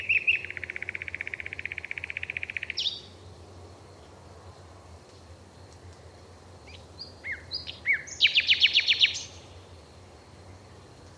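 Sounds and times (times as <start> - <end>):
bird calls: 0.0 - 3.2, 6.7 - 9.4.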